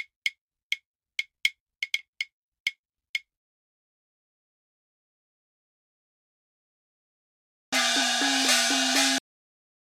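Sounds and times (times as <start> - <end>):
Asian percussion: 0.0 - 3.3, 7.8 - 9.2.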